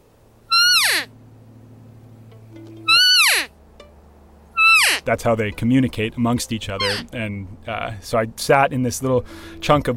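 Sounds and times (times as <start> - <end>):
faint low hum: 0.0 - 9.9
elk cow call imitating female elk: 0.5 - 1.2, 2.8 - 3.5, 4.5 - 5.1, 6.7 - 7.2
speech: 5.0 - 9.9.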